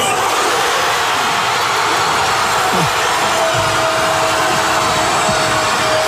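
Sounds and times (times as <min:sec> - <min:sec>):
city crowd erupting in joy after goal: 0:00.0 - 0:06.0.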